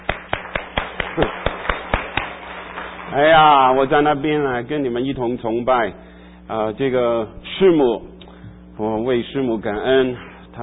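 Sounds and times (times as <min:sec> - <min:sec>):
audience clapping in rhythm: 0:00.0 - 0:04.0
speech: 0:01.2 - 0:01.4, 0:03.1 - 0:08.1, 0:08.8 - 0:10.6.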